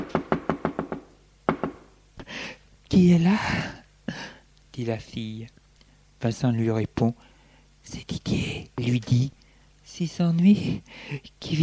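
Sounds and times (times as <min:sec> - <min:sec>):
knocking on a connecting door: 0:00.0 - 0:01.8
speech: 0:02.9 - 0:03.8, 0:04.8 - 0:05.6, 0:06.2 - 0:11.6.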